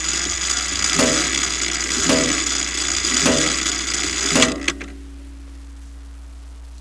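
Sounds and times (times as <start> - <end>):
kitchen clock: 0.0 - 4.9.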